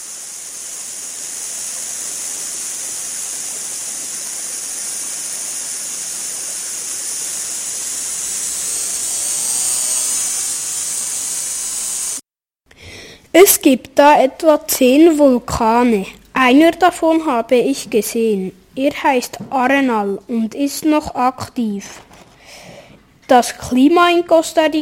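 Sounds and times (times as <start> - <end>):
rainforest ambience: 0.0 - 12.0
speech: 13.4 - 22.2, 23.3 - 24.8.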